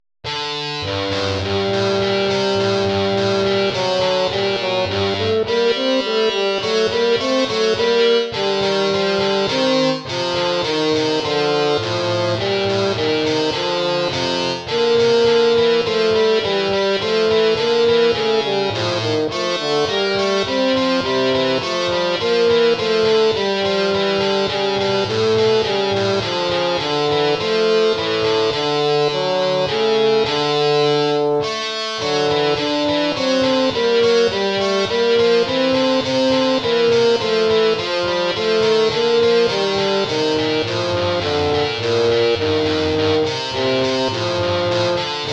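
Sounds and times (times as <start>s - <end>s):
baroque dance piece: 0.7s - 45.3s.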